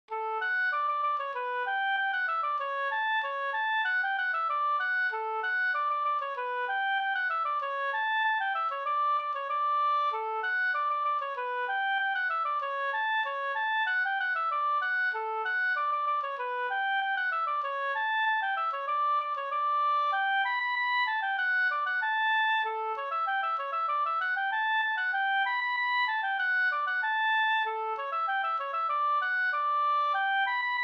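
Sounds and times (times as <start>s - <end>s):
polka music: 0.1s - 30.8s.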